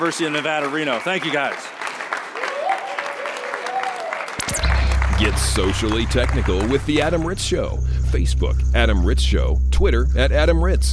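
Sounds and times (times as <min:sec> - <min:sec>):
speech: 0:00.0 - 0:01.8, 0:05.2 - 0:10.9
audience applause: 0:00.0 - 0:07.3.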